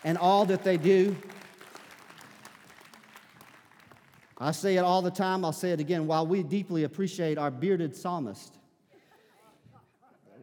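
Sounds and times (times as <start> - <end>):
speech: 0.0 - 1.3, 4.4 - 8.6
audience hand clapping: 0.0 - 4.7.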